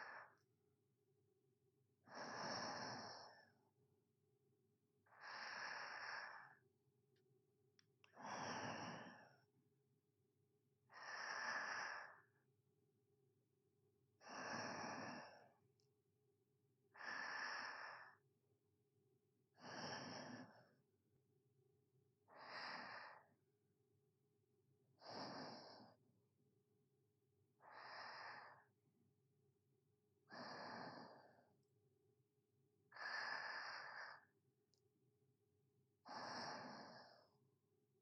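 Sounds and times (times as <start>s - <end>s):
sleeping breathing ASMR: 0.0s - 0.4s, 2.1s - 3.6s, 5.1s - 6.6s, 8.1s - 9.4s, 10.9s - 12.3s, 14.2s - 15.5s, 17.0s - 18.2s, 19.6s - 20.8s, 22.3s - 23.3s, 25.0s - 26.0s, 27.6s - 28.7s, 30.3s - 31.5s, 32.9s - 34.3s, 36.1s - 37.4s.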